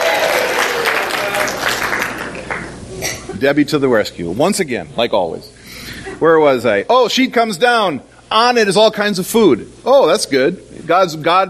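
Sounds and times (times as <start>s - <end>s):
audience applause: 0.0s - 2.8s
speech: 3.4s - 5.6s, 6.2s - 11.4s.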